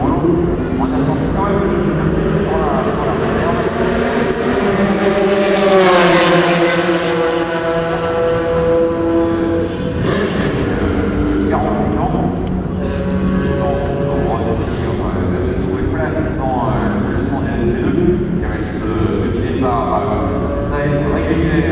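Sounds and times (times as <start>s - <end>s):
race track atmosphere at a straight: 0.0s - 21.7s.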